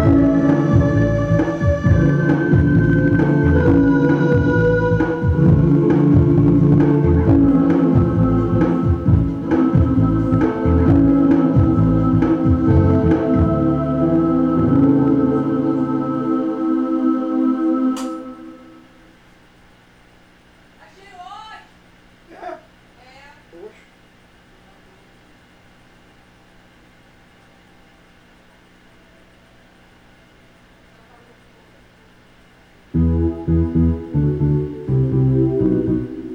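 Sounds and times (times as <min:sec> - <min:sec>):
rave music: 0:00.0 - 0:18.8, 0:33.0 - 0:36.3.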